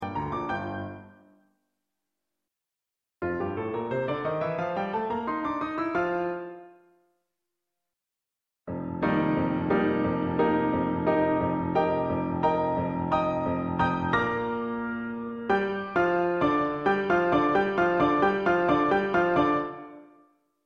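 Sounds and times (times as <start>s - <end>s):
piano: 0.0s - 1.6s, 3.2s - 7.0s, 8.7s - 20.4s.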